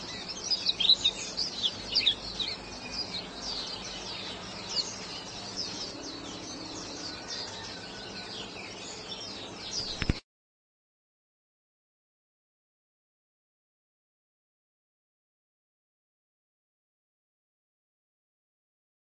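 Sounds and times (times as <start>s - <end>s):
white-eye singing: 0.0s - 10.0s.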